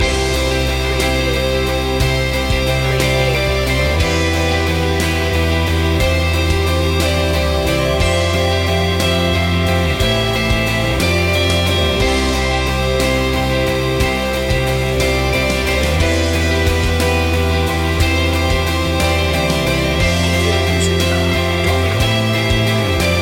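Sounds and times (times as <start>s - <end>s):
music loop: 0.0s - 23.1s.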